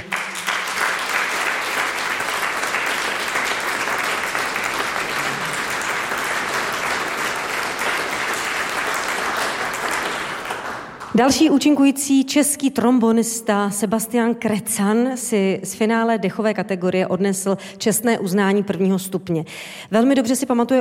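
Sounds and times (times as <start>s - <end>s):
audience applause: 0.0s - 11.1s
speech: 11.2s - 20.7s.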